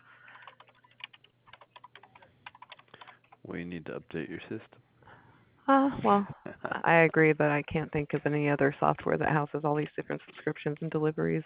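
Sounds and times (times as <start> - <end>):
typing on a computer keyboard into a form: 0.2 - 3.4
speech: 3.4 - 4.9, 5.7 - 11.4.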